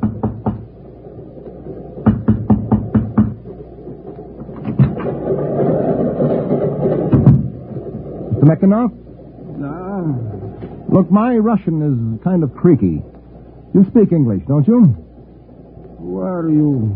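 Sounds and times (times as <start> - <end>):
knocking on a train compartment door: 0.0 - 0.7, 2.0 - 3.4
low rumbling: 0.0 - 16.9
thuds: 1.9 - 8.4
speech: 8.5 - 13.1, 13.7 - 15.0, 16.0 - 16.9.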